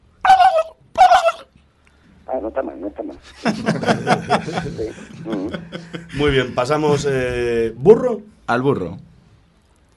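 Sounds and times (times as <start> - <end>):
human voice imitating a turkey gobble: 0.2 - 1.6
speech: 2.4 - 9.1
laughter: 3.2 - 6.6.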